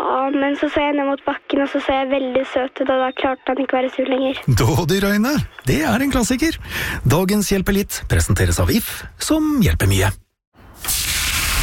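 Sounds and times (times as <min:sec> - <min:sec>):
speech: 0:00.5 - 0:10.2
sizzling grill: 0:10.8 - 0:11.6.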